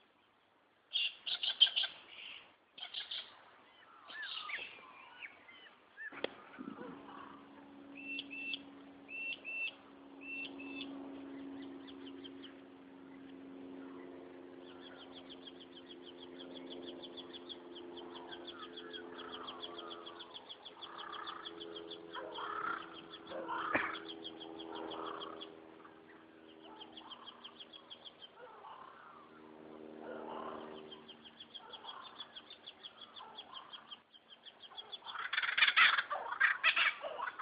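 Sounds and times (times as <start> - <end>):
birds singing: 0.0 - 37.4
kookaburras laughing: 22.1 - 25.4, 34.7 - 37.4.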